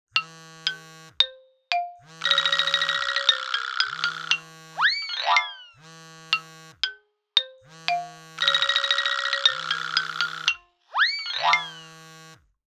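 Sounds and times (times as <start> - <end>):
cell phone: 0.2 - 6.8, 7.6 - 12.4.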